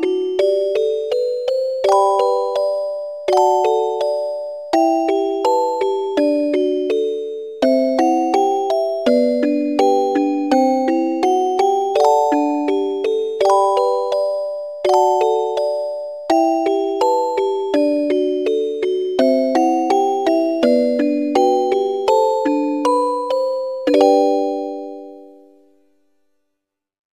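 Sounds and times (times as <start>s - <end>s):
single-line music box melody for flashback scenes: 0.0s - 26.0s.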